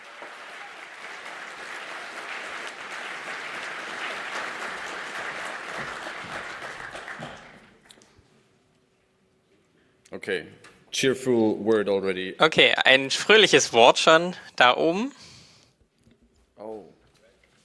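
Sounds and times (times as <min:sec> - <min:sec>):
large audience applause: 0:00.0 - 0:07.8, 0:12.5 - 0:15.1
speech: 0:10.2 - 0:15.3.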